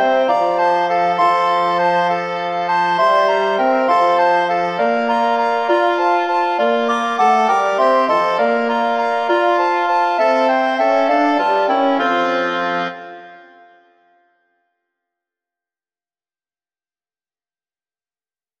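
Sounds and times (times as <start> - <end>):
two recorders playing: 0.0 - 13.2
French horn: 0.0 - 13.8
oboe: 0.0 - 14.2.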